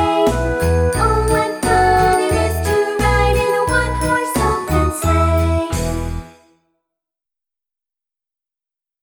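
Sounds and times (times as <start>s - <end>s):
Christmas song: 0.0s - 6.6s.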